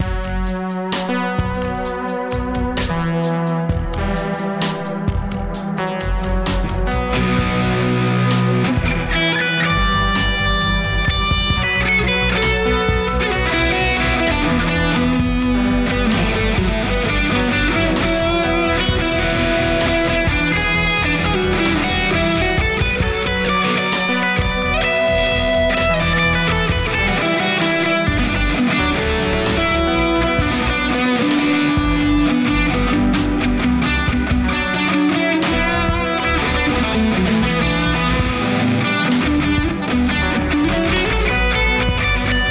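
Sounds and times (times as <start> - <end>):
slow rock guitar instrumental: 0.0 - 42.5.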